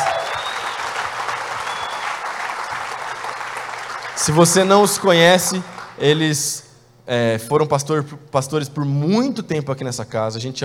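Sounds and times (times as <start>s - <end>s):
audience applause in church: 0.0s - 6.2s
speech: 4.2s - 10.6s.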